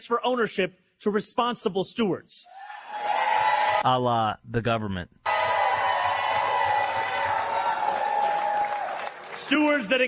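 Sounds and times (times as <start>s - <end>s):
speech: 0.0s - 2.8s, 3.8s - 5.2s, 9.5s - 10.0s
crowd cheering and roaring: 2.5s - 4.0s, 5.2s - 10.0s.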